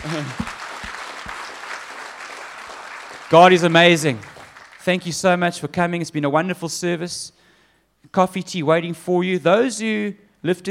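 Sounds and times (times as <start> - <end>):
speech: 0.0 - 0.6, 3.3 - 7.4, 8.1 - 10.6
audience applauding: 0.0 - 5.1.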